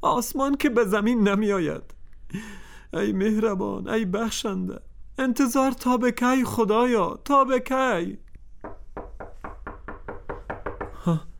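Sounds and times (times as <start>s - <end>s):
speech: 0.0s - 8.2s, 11.0s - 11.3s
knocking on a door: 8.6s - 11.1s.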